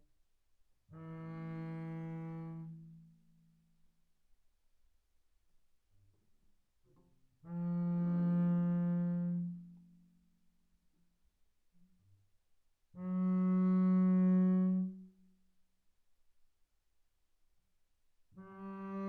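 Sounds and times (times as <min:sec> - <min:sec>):
double bass bowed on the D string mezzo forte: 0:01.0 - 0:03.0, 0:07.4 - 0:09.8, 0:13.0 - 0:15.1, 0:18.4 - 0:19.0.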